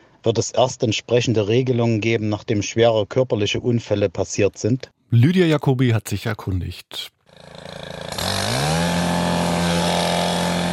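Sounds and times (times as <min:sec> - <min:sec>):
speech: 0:00.2 - 0:08.6
brush cutter mowing grass: 0:07.3 - 0:10.7.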